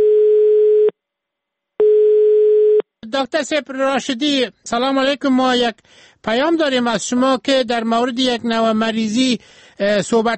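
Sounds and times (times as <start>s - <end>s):
telephone call tone, busy signal: 0.0s - 0.9s, 1.8s - 2.8s
speech: 3.2s - 10.3s.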